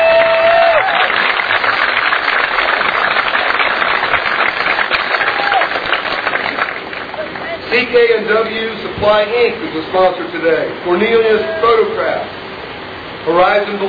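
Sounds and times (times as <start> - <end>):
audience applause: 0.0 - 7.6
speech: 7.9 - 12.4, 13.2 - 13.8.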